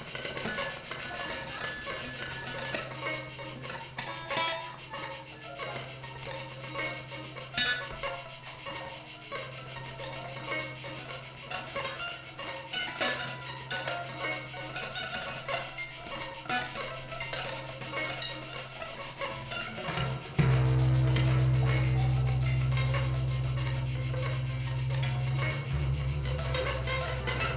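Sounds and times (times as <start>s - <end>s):
crickets chirping: 0.0s - 27.5s
live guitar: 0.0s - 27.5s.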